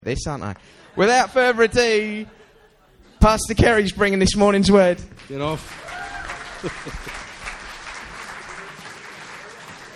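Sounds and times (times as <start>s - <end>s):
speech: 0.0s - 2.4s, 3.2s - 6.0s, 6.6s - 7.2s
laughter: 0.8s - 3.9s, 5.6s - 9.9s
audience clapping: 4.7s - 9.9s.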